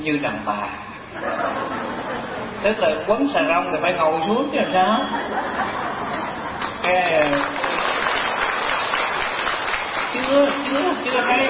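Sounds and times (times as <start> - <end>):
speech: 0.0 - 5.8, 6.9 - 7.7, 10.2 - 11.4
laughter: 1.1 - 2.6, 5.0 - 6.7
audience clapping: 6.6 - 11.4.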